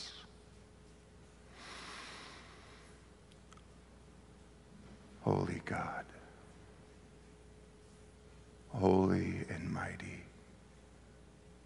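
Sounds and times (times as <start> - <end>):
slow exhale during a breathing prayer: 1.5 - 3.0
speech: 5.2 - 6.2, 8.7 - 10.3.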